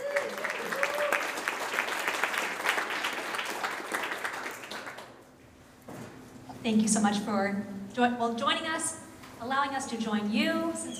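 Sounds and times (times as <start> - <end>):
audience applause welcoming a speaker: 0.0 - 5.2
speech: 6.6 - 10.9.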